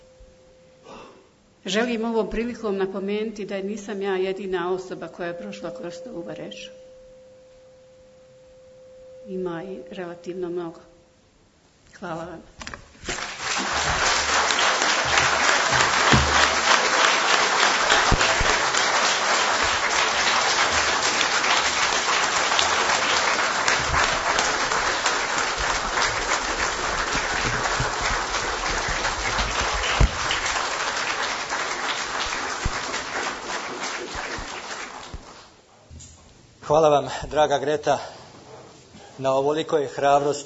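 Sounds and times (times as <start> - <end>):
speech: 1.6 - 6.8, 9.3 - 10.9, 12.0 - 12.7, 36.7 - 38.2, 39.2 - 40.4
audience applause: 13.1 - 35.5.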